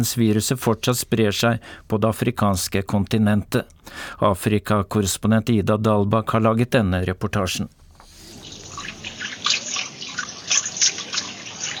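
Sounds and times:
speech: 0.0s - 7.8s
running water splashing as a car mechanic scrubs motor oil off his hands in Accra: 8.0s - 11.7s.

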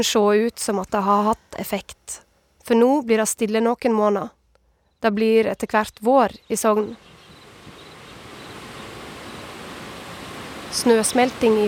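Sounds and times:
speech: 0.0s - 4.4s, 5.0s - 7.1s, 10.7s - 11.6s
large powerful river flowing through Sogndal centre: 7.0s - 11.6s.

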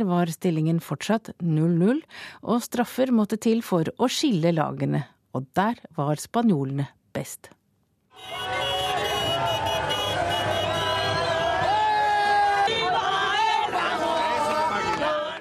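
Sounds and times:
speech: 0.0s - 7.6s, 8.2s - 8.6s
car horns honking: 8.1s - 11.9s
football fans celebrating: 8.1s - 15.3s.

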